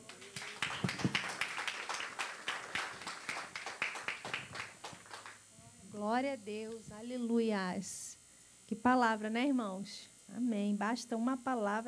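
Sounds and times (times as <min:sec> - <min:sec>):
audience clapping: 0:00.0 - 0:05.4
speech: 0:06.0 - 0:08.0, 0:08.7 - 0:11.8.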